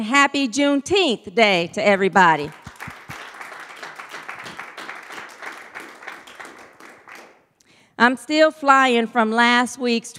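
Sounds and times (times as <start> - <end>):
speech: 0.0 - 2.6, 8.0 - 10.1
crowd clapping: 2.4 - 7.5.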